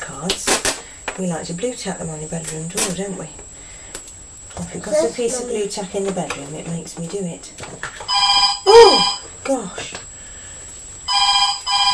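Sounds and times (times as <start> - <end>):
speech: 0.2 - 0.6, 1.2 - 3.5, 4.6 - 8.0, 8.7 - 10.0
loud telephone ring: 8.1 - 9.3, 11.1 - 11.9.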